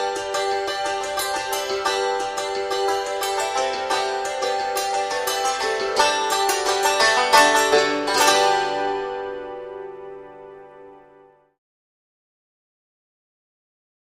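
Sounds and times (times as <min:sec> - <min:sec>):
banjo: 0:00.0 - 0:11.1
hammered dulcimer: 0:00.0 - 0:11.2.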